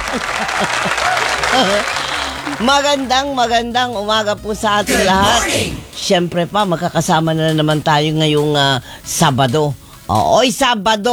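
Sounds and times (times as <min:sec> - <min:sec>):
live crowd applause on a Saturday morning show: 0:00.0 - 0:06.2
laughter: 0:00.0 - 0:10.2
speech: 0:00.2 - 0:11.1.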